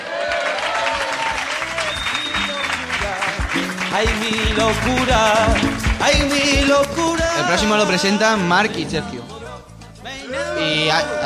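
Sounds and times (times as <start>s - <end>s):
audience clapping: 0.0s - 7.3s
speech: 3.9s - 9.3s, 10.6s - 11.2s.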